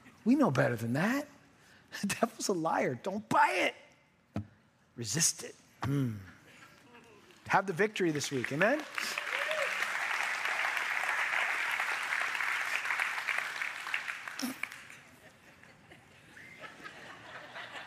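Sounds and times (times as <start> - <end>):
speech: 0.2 - 6.3, 7.5 - 9.2
audience clapping: 6.9 - 15.2
laughter: 14.4 - 17.8.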